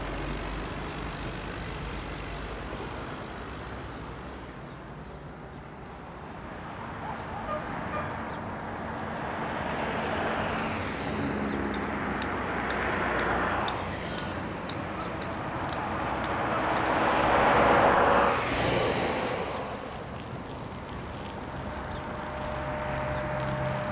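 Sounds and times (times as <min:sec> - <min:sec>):
morning city traffic in Barrio Molino Blanco Rosario Argentina: 0:00.0 - 0:23.8.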